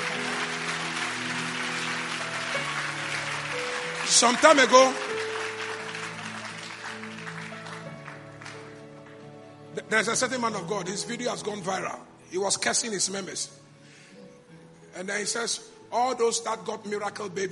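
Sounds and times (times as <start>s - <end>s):
audience clapping as an offering: 0.0s - 9.8s
speech: 4.1s - 5.1s, 9.9s - 13.6s, 15.0s - 17.5s.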